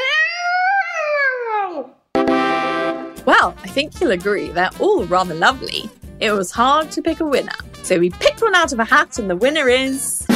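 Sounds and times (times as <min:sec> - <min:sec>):
child imitating an elephant's trumpet: 0:00.0 - 0:02.0
speech: 0:03.3 - 0:10.2.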